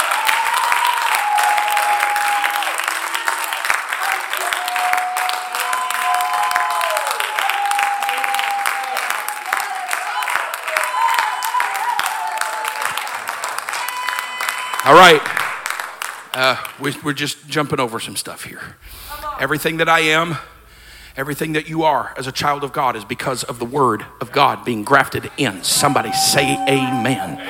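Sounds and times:
audience clapping hands: 0.0s - 17.0s, 25.7s - 27.4s
speech: 14.9s - 15.4s, 16.4s - 20.5s, 21.2s - 27.4s.

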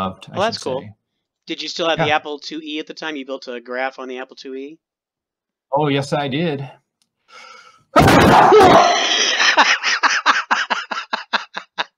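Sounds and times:
speech: 0.0s - 4.9s, 5.7s - 9.9s
loud sneeze: 8.0s - 9.3s
laughter: 8.7s - 11.9s.

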